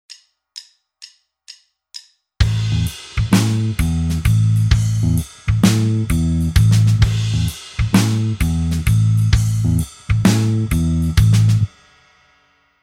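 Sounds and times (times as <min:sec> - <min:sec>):
backing music: 0:02.4 - 0:12.0.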